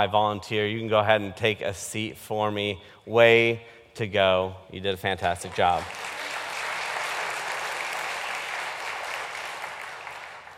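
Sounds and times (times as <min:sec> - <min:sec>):
speech: 0:00.0 - 0:06.2
audience clapping: 0:05.2 - 0:10.5.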